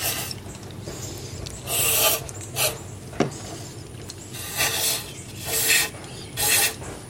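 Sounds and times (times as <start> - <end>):
scrubbing with an old toothbrush: 0.0 - 2.9, 3.5 - 6.8.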